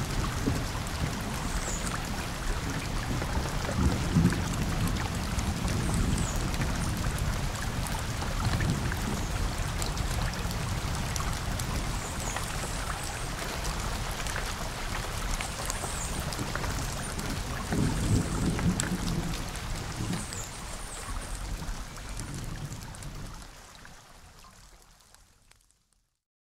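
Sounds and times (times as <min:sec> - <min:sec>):
rain in 3D sound: 0:00.0 - 0:26.2.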